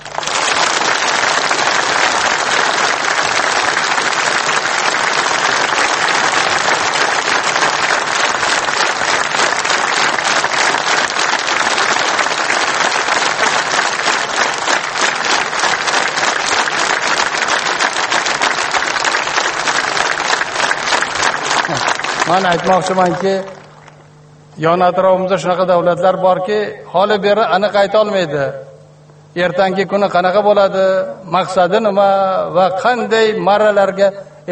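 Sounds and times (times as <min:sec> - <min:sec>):
audience applause at a speech: 0:00.0 - 0:24.0
speech: 0:22.3 - 0:23.6, 0:24.6 - 0:28.7, 0:29.3 - 0:34.5.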